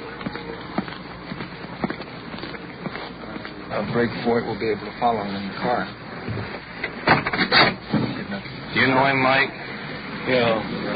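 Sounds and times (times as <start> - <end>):
footsteps crossing the street: 0.0 - 7.0
wind: 0.0 - 10.9
speech: 3.7 - 7.7, 8.8 - 9.6, 10.3 - 10.9.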